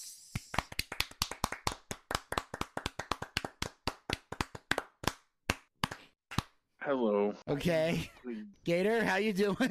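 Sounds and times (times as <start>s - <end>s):
hands clapping to welcome a guest onto a wrestling recap show: 0.3s - 6.6s
speech: 6.9s - 9.6s.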